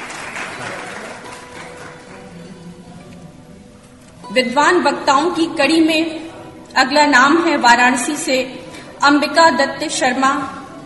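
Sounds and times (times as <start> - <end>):
audience applause welcoming the chairman of a formal programme: 0.0 - 2.4
speech: 4.3 - 6.2, 6.8 - 10.6.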